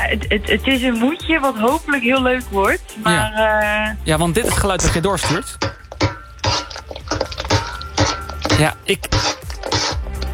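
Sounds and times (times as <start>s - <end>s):
speech: 0.1s - 5.8s, 8.6s - 9.9s
scraping and rattling: 4.2s - 10.3s
metal pots and pans clattering on a stove: 4.4s - 10.3s.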